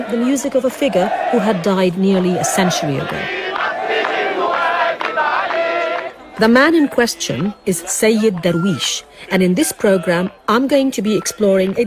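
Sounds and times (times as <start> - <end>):
large crowd chanting in a square: 0.0 - 11.8
speech: 0.1 - 3.4, 6.4 - 11.8.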